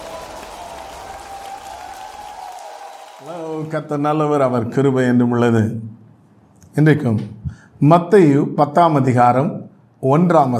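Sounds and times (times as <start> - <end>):
audience clapping: 0.0 - 4.1
speech: 3.2 - 6.0, 6.8 - 10.5.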